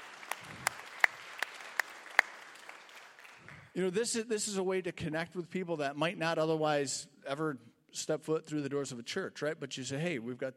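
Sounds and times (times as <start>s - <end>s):
audience applause: 0.0s - 3.7s
speech: 3.8s - 10.5s.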